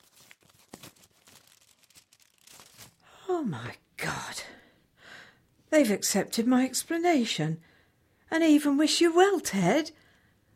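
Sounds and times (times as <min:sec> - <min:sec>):
envelope from the Open University being torn open: 0:00.0 - 0:03.1
paper crinkling: 0:00.0 - 0:03.1
speech: 0:03.3 - 0:04.5, 0:05.7 - 0:07.7, 0:08.3 - 0:10.0.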